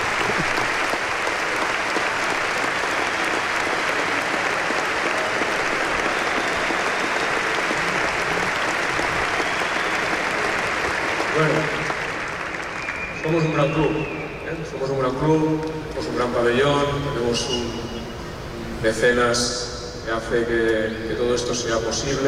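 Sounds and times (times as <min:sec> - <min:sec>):
large crowd applause: 0:00.0 - 0:14.4
speech: 0:13.3 - 0:14.1, 0:14.8 - 0:17.8, 0:18.8 - 0:22.2.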